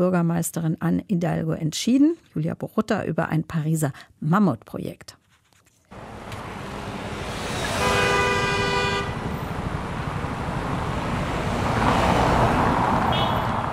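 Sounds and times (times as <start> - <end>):
speech: 0.0 - 5.2
motor traffic roar on the Champs-Élysées in Paris: 5.9 - 13.7
car horn on the Champs-Élysées: 6.9 - 9.4, 13.0 - 13.7.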